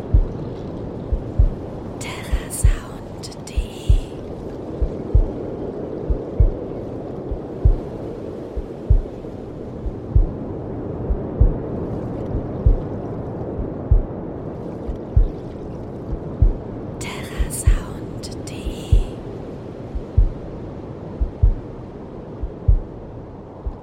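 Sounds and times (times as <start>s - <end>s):
heartbeat: 0.0s - 0.5s, 1.1s - 3.0s, 3.6s - 4.2s, 4.8s - 6.7s, 7.3s - 8.0s, 8.6s - 9.2s, 9.8s - 10.4s, 11.0s - 13.0s, 13.6s - 14.2s, 14.9s - 15.4s, 16.1s - 16.6s, 17.3s - 18.0s, 18.6s - 19.2s, 19.9s - 20.4s, 21.2s - 21.6s, 22.4s - 22.9s, 23.6s - 23.8s
waves: 0.0s - 23.8s.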